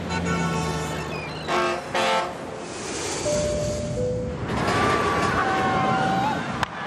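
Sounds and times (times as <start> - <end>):
horn blaring: 0.1 - 2.5
rushing engine and wind noise: 2.3 - 6.7.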